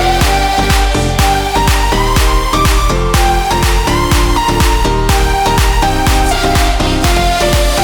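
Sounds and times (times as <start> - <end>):
a cappella hand claps: 0.2 - 2.9, 3.6 - 7.7.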